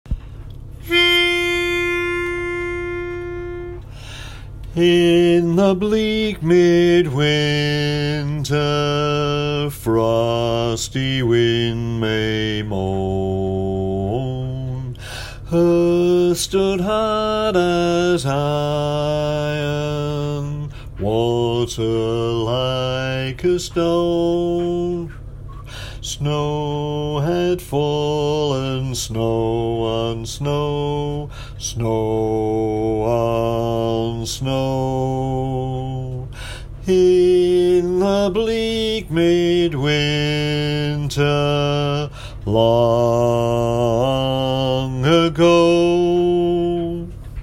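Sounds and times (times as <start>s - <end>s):
bass: 0.1s - 47.4s.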